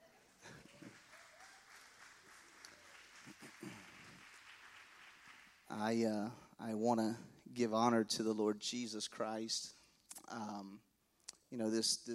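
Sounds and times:
crowd applause: 0.0s - 6.0s
speech: 5.7s - 10.9s, 11.5s - 12.1s.

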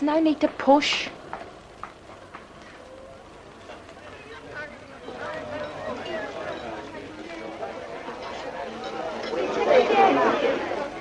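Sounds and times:
speech: 0.0s - 1.2s
busy cafe chatter and background hubbub: 0.2s - 10.9s.

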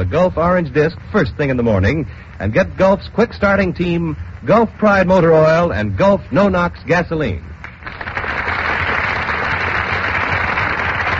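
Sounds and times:
speech: 0.0s - 8.0s
studio audience applause at the Gulf Theater: 7.6s - 11.1s.

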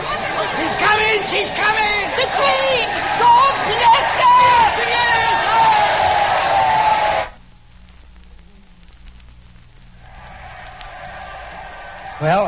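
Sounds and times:
crowds cheering for the Queen: 0.0s - 7.4s, 10.0s - 12.4s
speech: 12.2s - 12.4s.

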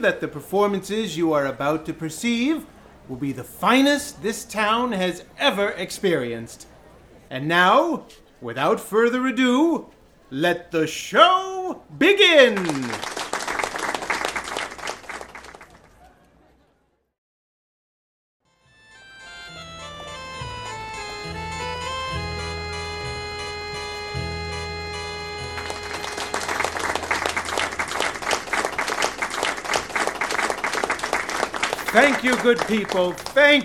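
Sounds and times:
speech: 0.0s - 6.7s, 7.3s - 13.1s, 32.4s - 33.6s
audience applause: 12.4s - 16.0s, 25.4s - 33.6s.

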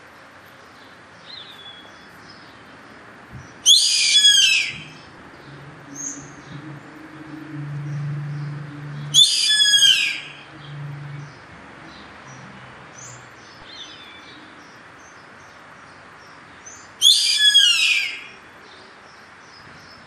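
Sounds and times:
bird hissing screech: 3.6s - 5.1s, 9.1s - 10.5s, 17.0s - 18.4s
low hum: 4.6s - 13.6s.

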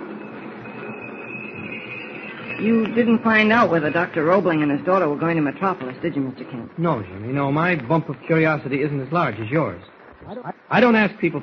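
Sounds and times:
passenger train slowing as it comes into a station: 0.0s - 8.7s
faint high whine: 0.0s - 11.4s
speech: 2.6s - 11.4s.

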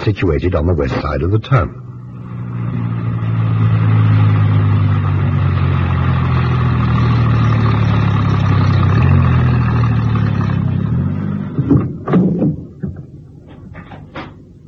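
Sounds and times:
speech: 0.0s - 1.8s
van engine driving: 0.0s - 14.6s
sharp clunks and knocks: 11.3s - 14.6s.

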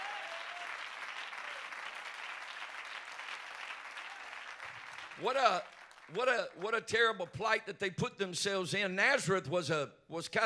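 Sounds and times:
audience clapping hands: 0.0s - 7.2s
speech: 5.2s - 10.4s.

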